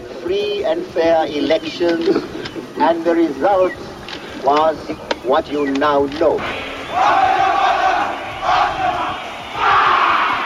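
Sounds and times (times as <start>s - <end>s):
speech: 0.3s - 3.8s, 4.4s - 7.5s
crowd at a Robert Mugabe election rally in Zimbabwe roaring and chanting: 6.4s - 10.4s.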